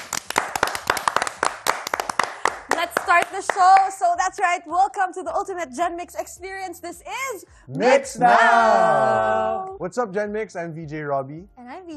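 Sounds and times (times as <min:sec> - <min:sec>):
audience clapping on request: 0:00.0 - 0:04.5
speech: 0:03.1 - 0:11.9.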